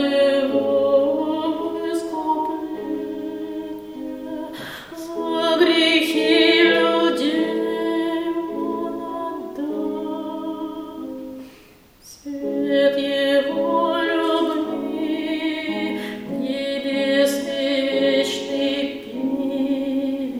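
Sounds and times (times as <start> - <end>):
alto voice singing: 0.0 - 20.3.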